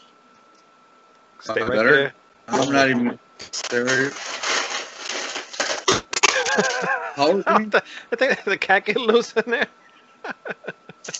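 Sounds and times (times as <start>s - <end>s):
speech: 1.4s - 4.3s, 6.6s - 11.1s
ice from an ice machine: 3.6s - 6.8s
laughter: 6.2s - 11.1s.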